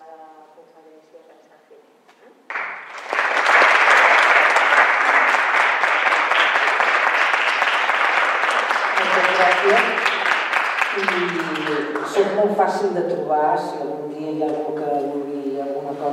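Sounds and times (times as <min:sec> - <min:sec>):
audience applause after a lecture: 0:02.5 - 0:12.3
speech: 0:12.5 - 0:14.7.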